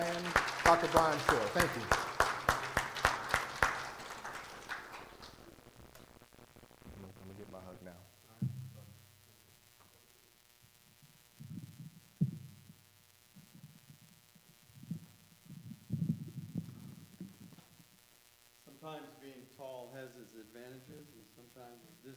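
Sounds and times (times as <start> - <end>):
audience applause: 0.0 - 5.5
speech: 0.7 - 2.0.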